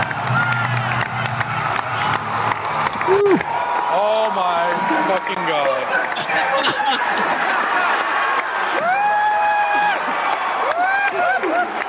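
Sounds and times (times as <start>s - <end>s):
audience in Hall H cheering and applauding a film announcement: 0.0s - 11.8s
high whoops: 3.0s - 3.8s, 8.7s - 11.8s
laughter: 5.8s - 8.3s.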